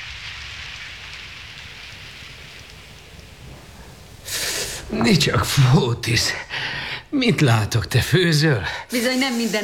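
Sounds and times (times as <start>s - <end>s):
rain pouring down: 0.0s - 9.6s
speech: 4.9s - 9.6s.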